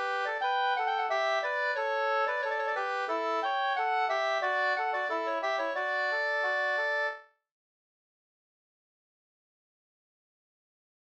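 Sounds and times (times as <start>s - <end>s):
folk walking tune: 0.0s - 7.2s.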